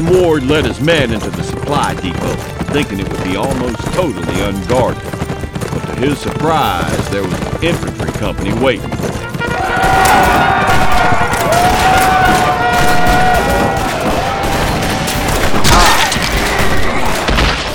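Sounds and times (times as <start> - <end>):
speech: 0.0 - 5.2, 5.8 - 9.2
people shouting: 9.3 - 17.7
volley of rifle gunfire: 9.8 - 17.7.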